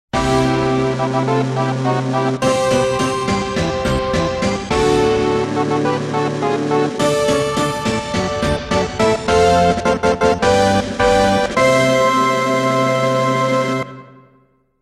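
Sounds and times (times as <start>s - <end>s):
fanfare: 0.2s - 14.2s.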